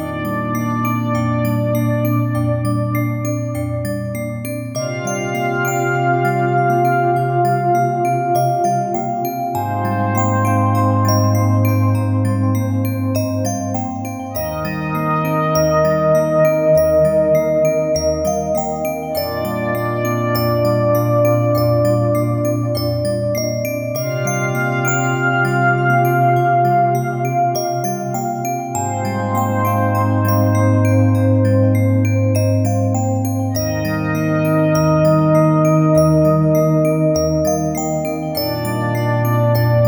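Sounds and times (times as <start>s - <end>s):
ambient synthesizer: 0.0s - 39.8s
glass bells in ambient music: 0.0s - 39.8s.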